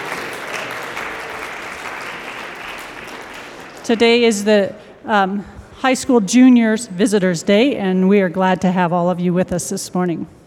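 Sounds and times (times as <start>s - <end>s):
audience clapping: 0.0s - 4.5s
speech: 3.9s - 10.4s.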